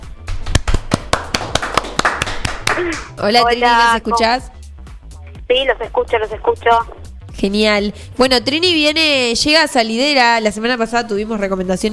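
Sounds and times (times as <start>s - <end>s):
applause: 0.6s - 3.2s
speech: 2.8s - 4.5s, 5.5s - 11.9s.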